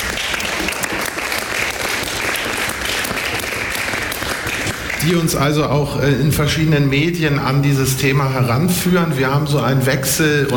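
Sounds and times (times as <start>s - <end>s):
audience applause: 0.0s - 5.5s
speech: 5.0s - 10.5s.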